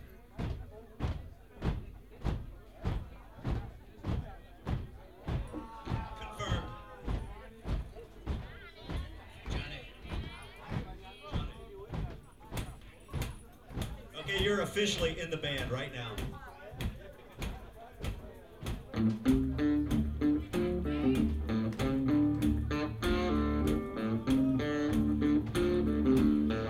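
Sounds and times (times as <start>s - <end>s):
audience stomping their feet: 0.3s - 26.6s
crowd cheering: 5.3s - 11.5s, 23.2s - 26.6s
speech: 14.5s - 16.4s.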